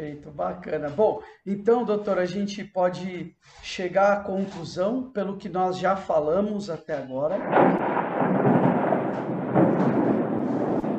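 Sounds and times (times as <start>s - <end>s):
speech: 0.0s - 8.0s
heavy rainstorm: 7.4s - 10.9s
thunder: 7.4s - 10.9s.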